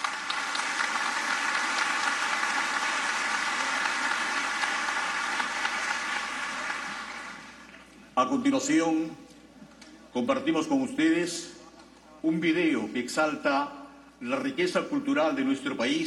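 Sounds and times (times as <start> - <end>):
audience applause: 0.0 - 7.7
speech: 8.2 - 9.2, 10.1 - 11.6, 12.2 - 16.0.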